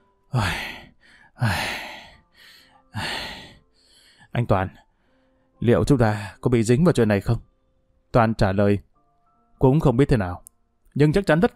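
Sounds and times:
speech: 0:00.3 - 0:00.7, 0:01.4 - 0:01.6, 0:04.4 - 0:04.8, 0:05.6 - 0:07.5, 0:08.1 - 0:08.9, 0:09.6 - 0:10.4, 0:11.0 - 0:11.5
heavy panting breaths: 0:00.3 - 0:04.3.

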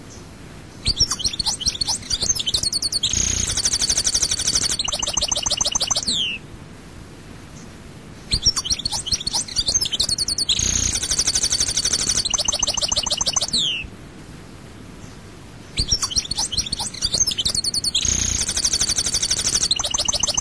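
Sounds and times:
European goldfinch song: 0:00.8 - 0:06.4, 0:08.3 - 0:13.9, 0:15.8 - 0:20.4.

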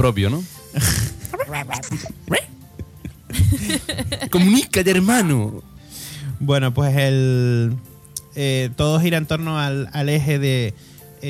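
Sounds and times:
speech: 0:00.0 - 0:02.6, 0:03.3 - 0:05.7, 0:06.4 - 0:11.2
laughter: 0:00.8 - 0:04.9
dog barking: 0:01.2 - 0:02.6.

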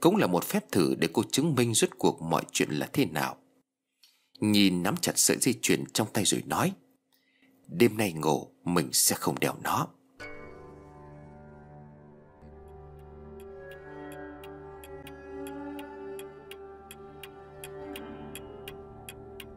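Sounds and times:
speech: 0:00.0 - 0:03.4, 0:04.4 - 0:06.8, 0:07.7 - 0:10.0
clock ticking: 0:12.4 - 0:19.5.

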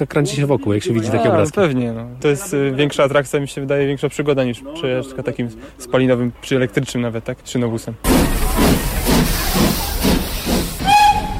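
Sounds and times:
speech: 0:00.0 - 0:08.8
steam locomotive hissing steam: 0:08.0 - 0:11.3.

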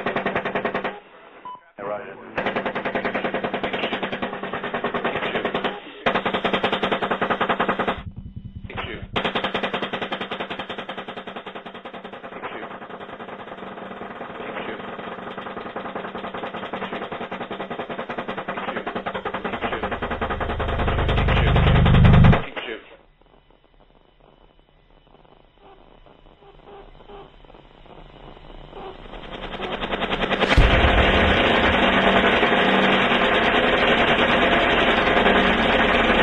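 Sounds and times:
machine gun fire from an attack helicopter: 0:00.0 - 0:01.0, 0:02.3 - 0:22.5, 0:28.0 - 0:36.2
speech: 0:02.0 - 0:02.5
deep swelling rumble: 0:07.9 - 0:09.3, 0:28.0 - 0:36.2.

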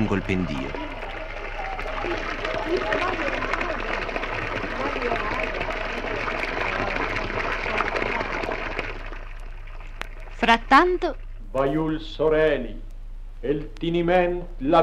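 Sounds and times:
speech: 0:00.0 - 0:01.0, 0:02.0 - 0:03.4, 0:10.4 - 0:14.8
gurgling flowing water: 0:00.0 - 0:11.6.

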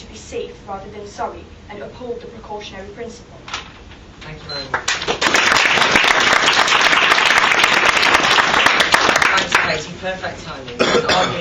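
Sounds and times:
speech: 0:00.3 - 0:03.6, 0:04.2 - 0:05.1, 0:09.8 - 0:11.3
audience applause: 0:04.9 - 0:09.7.

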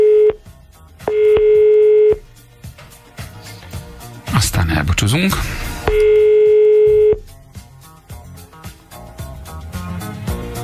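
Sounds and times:
telephone number being dialled for a call: 0:00.0 - 0:00.4, 0:01.1 - 0:02.2, 0:05.9 - 0:07.2
speech: 0:05.1 - 0:05.6.

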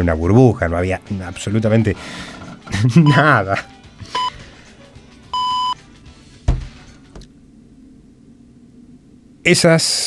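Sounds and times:
speech: 0:00.0 - 0:04.1, 0:09.5 - 0:10.0
radio time signal beeps: 0:05.4 - 0:05.8
dull thump: 0:06.4 - 0:07.3.

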